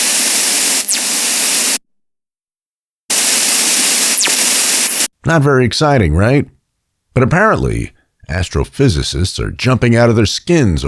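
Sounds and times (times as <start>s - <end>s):
simulated burst of waves resembling CB or walkie-talkie squelch: 0.0s - 1.8s, 3.1s - 5.1s
speech: 5.2s - 6.6s, 7.2s - 10.8s.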